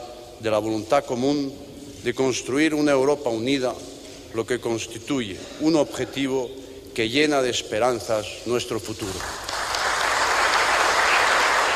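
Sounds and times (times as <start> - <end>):
speech: 0.4 - 9.5
whole hall applauding at signing of the Accession Treaty to the European Communities: 9.2 - 11.7.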